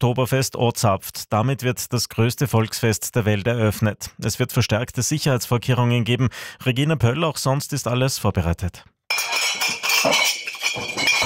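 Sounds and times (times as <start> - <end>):
speech: 0.0 - 10.2
glasses clinking at a beer festival, the opening of Munich's Oktoberfest: 9.1 - 11.2.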